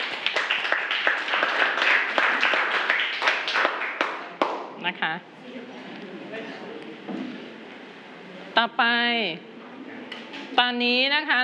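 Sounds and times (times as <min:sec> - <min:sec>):
students clapping: 0:00.0 - 0:04.8
speech: 0:04.9 - 0:05.7, 0:08.6 - 0:09.5, 0:10.6 - 0:11.4.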